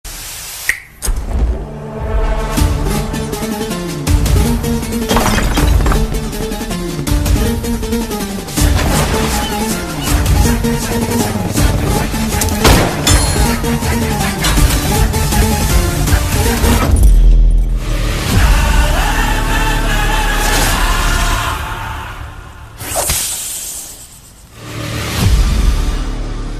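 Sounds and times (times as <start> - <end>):
trailer background music: 0.1 - 26.5.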